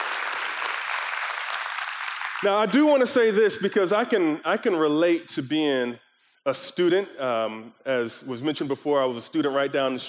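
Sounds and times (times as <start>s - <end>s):
audience clapping: 0.0s - 4.2s
speech: 2.4s - 10.0s.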